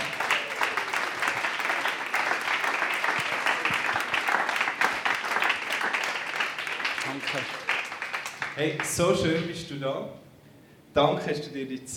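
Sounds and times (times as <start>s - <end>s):
audience applause: 0.0s - 9.0s
speech: 7.2s - 7.6s, 8.6s - 10.2s, 10.9s - 11.9s.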